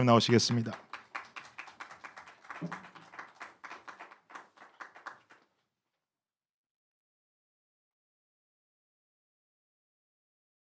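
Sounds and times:
speech: 0.0 - 0.9
audience clapping in welcome: 0.0 - 5.6.

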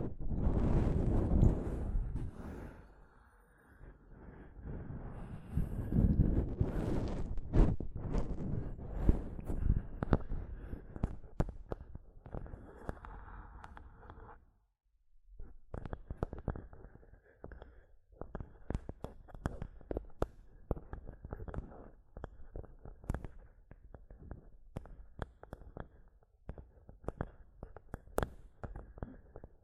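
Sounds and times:
microphone tapping and scratching: 0.0 - 2.5, 5.4 - 14.4, 15.4 - 29.6.

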